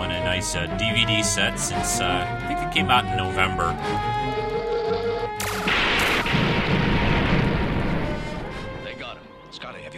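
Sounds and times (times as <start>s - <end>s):
speech: 0.4s - 4.5s
blast from a Klingon battlecruiser in Star Trek: 5.4s - 8.8s.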